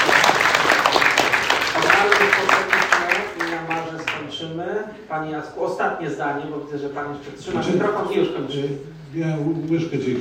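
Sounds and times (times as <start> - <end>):
audience applause: 0.0 - 4.2
speech: 5.1 - 10.1.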